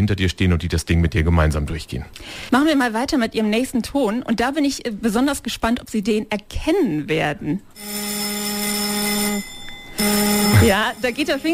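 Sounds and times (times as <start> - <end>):
speech: 0.0 - 8.4, 10.0 - 11.5
parliament voting gong: 7.8 - 11.5.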